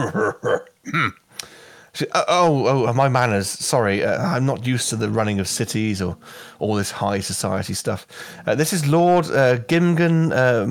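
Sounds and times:
dwarf coughing: 0.0s - 1.2s
speech: 0.0s - 1.2s, 1.9s - 10.6s.

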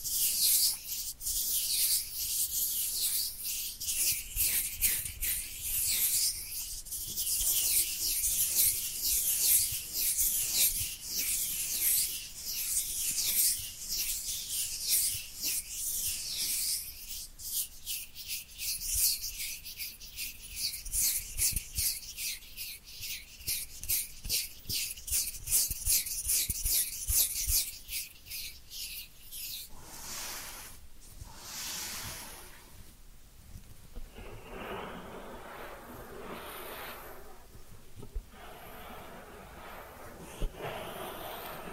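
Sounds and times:
ear cleaning scratching and rubbing: 0.0s - 32.9s, 33.9s - 41.7s
soft brushing and rustling: 29.5s - 41.7s.

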